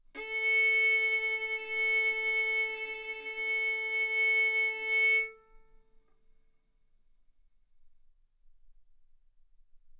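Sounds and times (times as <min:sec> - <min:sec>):
violin arco on A string: 0:00.2 - 0:05.9.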